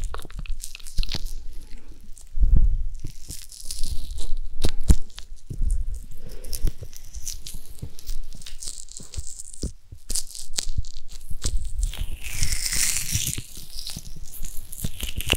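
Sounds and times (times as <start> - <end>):
sharp clicks and pops: 0.0 - 2.3, 3.0 - 15.3
ear massage rubbing and crinkly crunching: 0.0 - 15.3
low thumps: 2.3 - 3.1.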